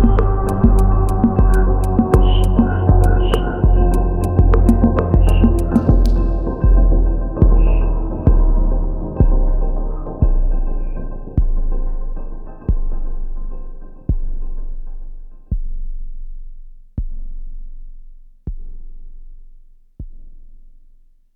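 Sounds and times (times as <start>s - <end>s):
ambience: 0.0s - 16.1s.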